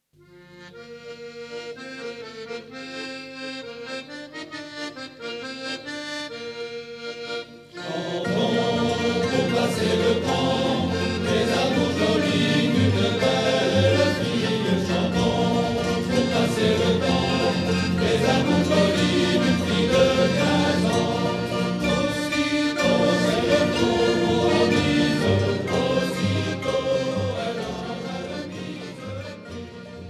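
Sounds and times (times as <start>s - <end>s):
chanting: 7.7s - 29.6s.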